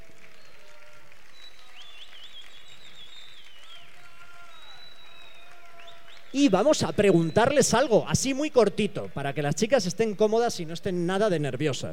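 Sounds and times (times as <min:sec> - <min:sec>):
audience applause: 0:00.0 - 0:07.8
speech: 0:06.3 - 0:11.9.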